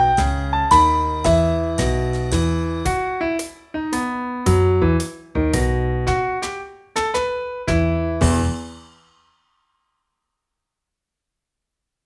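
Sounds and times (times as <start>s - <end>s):
swing music: 0.0s - 8.8s.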